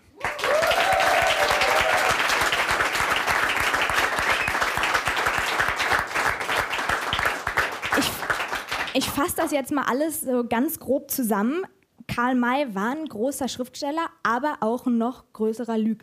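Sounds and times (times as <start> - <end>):
crowd applause: 0.1 - 9.0
speech: 9.2 - 16.0.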